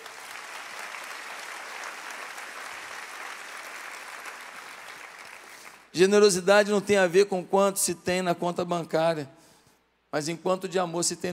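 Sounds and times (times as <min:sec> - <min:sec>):
audience applause: 0:00.0 - 0:05.9
speech: 0:06.0 - 0:09.4, 0:10.1 - 0:11.3.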